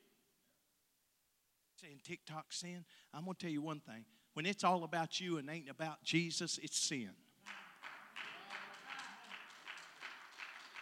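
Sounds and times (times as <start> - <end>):
speech: 1.8 - 7.6
audience clapping lightly: 7.4 - 10.8.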